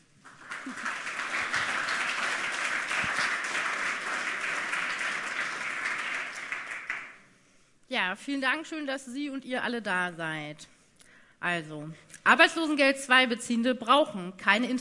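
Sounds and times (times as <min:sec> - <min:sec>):
audience applause: 0:00.2 - 0:07.2
speech: 0:08.0 - 0:10.8, 0:11.4 - 0:14.7.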